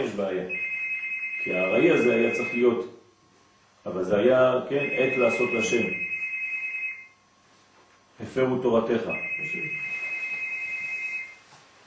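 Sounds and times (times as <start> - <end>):
speech: 0.0 - 0.7, 1.4 - 3.0, 3.8 - 6.0, 8.2 - 9.9
mobile phone ringing: 0.5 - 2.7, 4.7 - 7.2, 9.1 - 11.4.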